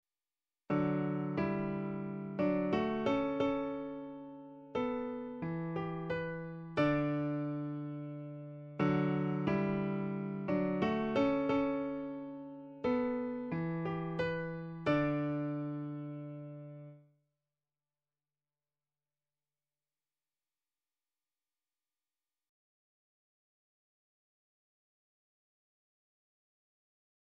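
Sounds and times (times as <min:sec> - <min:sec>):
music in a major key: 0:00.7 - 0:17.0.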